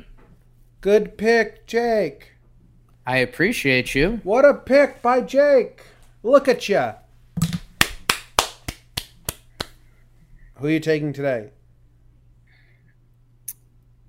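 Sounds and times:
speech: 0.8 - 2.3, 3.1 - 7.0, 10.6 - 11.6
hand clapping: 7.4 - 9.8.

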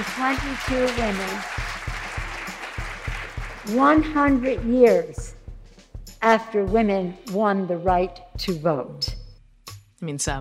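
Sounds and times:
audience applause: 0.0 - 4.4
speech: 0.1 - 1.6, 3.7 - 5.3, 6.2 - 9.1, 10.0 - 10.3.

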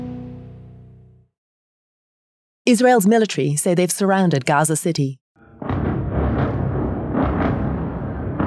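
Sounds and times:
speech: 2.7 - 5.2
dense continuous low roar: 5.4 - 8.4
heavy explosions in Gaza City: 5.4 - 8.4.

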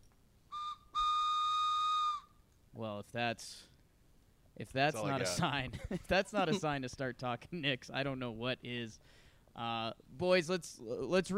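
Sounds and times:
train whistle blasts: 0.5 - 2.4
speech: 2.8 - 3.7, 4.6 - 11.3.

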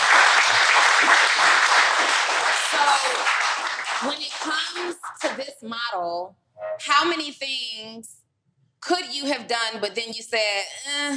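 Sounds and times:
audience clapping: 0.0 - 5.5
speech: 5.3 - 8.2, 8.8 - 11.1.

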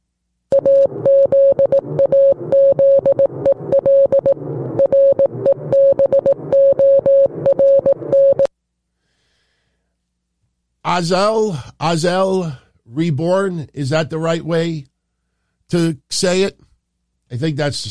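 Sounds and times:
morse code signal: 0.5 - 8.5
speech: 11.0 - 14.9, 15.7 - 16.7, 17.3 - 17.8.

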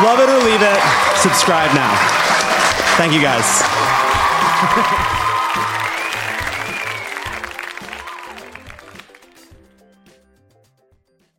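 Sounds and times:
speech: 0.0 - 2.2, 3.0 - 5.8
audience applause: 0.0 - 9.6
laughter: 3.8 - 5.9.

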